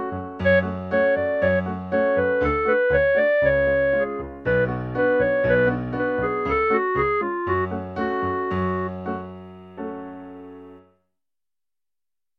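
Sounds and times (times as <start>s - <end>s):
clarinet: 0.0s - 9.4s.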